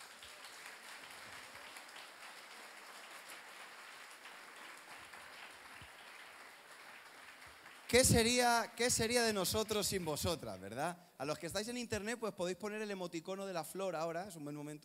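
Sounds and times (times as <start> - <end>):
audience applause: 0.0 - 8.6
speech: 7.9 - 14.8.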